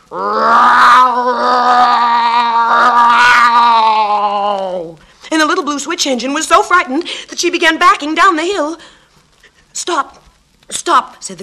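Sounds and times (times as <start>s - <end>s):
speech: 0.1s - 0.8s, 5.8s - 9.0s, 9.8s - 10.2s, 10.8s - 11.4s
bear growling menacingly: 0.1s - 4.7s.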